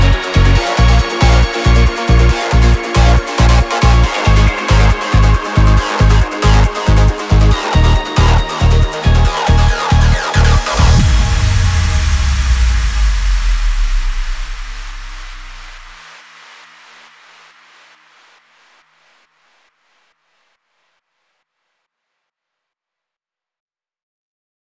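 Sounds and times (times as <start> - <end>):
noise trance music: 0.0 - 19.6.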